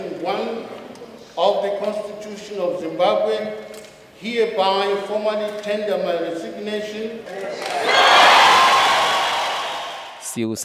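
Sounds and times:
speech: 1.4s - 8.2s, 10.3s - 10.6s
crowds cheering in the streets of Harare after Mugabe's resignation: 7.5s - 10.3s.

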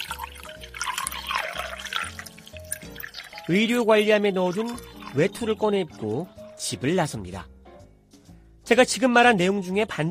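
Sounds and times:
coffee machine pouring hot coffee: 0.0s - 6.4s
speech: 3.5s - 7.5s, 8.7s - 10.0s.

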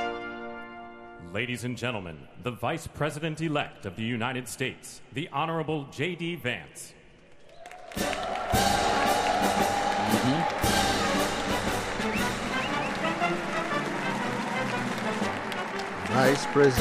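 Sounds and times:
speech: 1.3s - 7.0s, 16.2s - 16.7s
applause: 7.4s - 16.7s.

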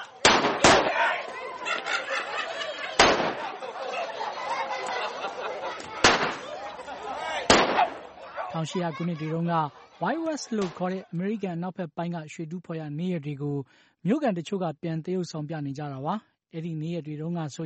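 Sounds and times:
gunshots during a reenacted robbery in a historic American gold-rush mining town: 0.2s - 1.2s, 3.0s - 3.5s, 6.0s - 6.5s, 7.5s - 8.0s
laughter: 0.8s - 11.5s
speech: 8.6s - 17.6s.

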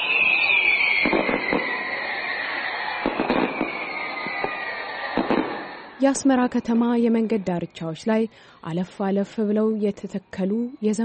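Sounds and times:
falling whistling tone: 0.0s - 6.0s
celebration fireworks over Bahti Meskerem Square in Asmara, Eritrea: 0.0s - 7.9s
speech: 6.0s - 11.0s.

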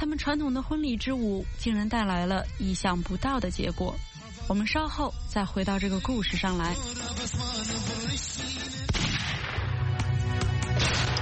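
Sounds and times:
speech: 0.2s - 8.8s
gunfire: 8.8s - 9.8s, 10.7s - 11.2s.

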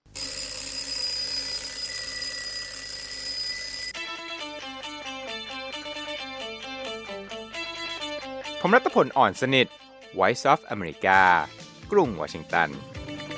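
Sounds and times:
alarm clock ringing: 0.1s - 4.0s
speech: 8.6s - 13.0s.

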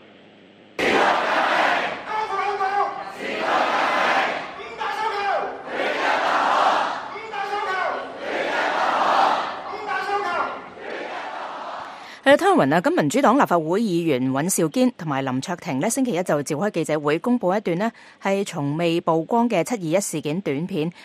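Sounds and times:
crowd of secondary students and parents chanting slogans at a peaceful rally: 0.8s - 2.4s, 3.0s - 4.6s, 5.3s - 12.0s
speech: 12.4s - 21.0s.

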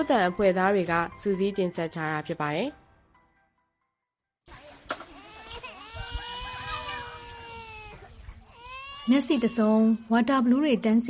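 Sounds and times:
speech: 0.0s - 2.8s, 9.1s - 11.0s
two-year-old child crying inside a tent in a refugee camp: 5.1s - 10.0s.

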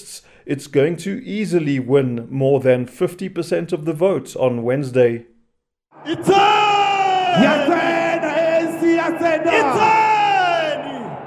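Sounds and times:
speech: 0.0s - 5.3s, 6.0s - 6.6s, 7.4s - 7.8s
thousands of supporters cheering at an ANC election rally in a Soweto stadium: 6.0s - 11.2s.

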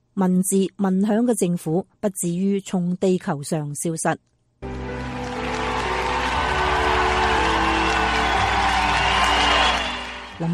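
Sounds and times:
speech: 0.2s - 4.4s, 10.4s - 10.5s
crowd applauding: 4.6s - 10.5s
scattered cheers: 4.9s - 10.4s.

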